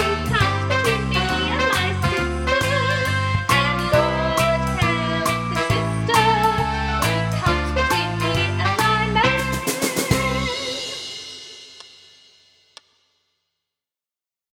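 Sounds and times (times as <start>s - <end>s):
person singing: 0.0s - 11.1s.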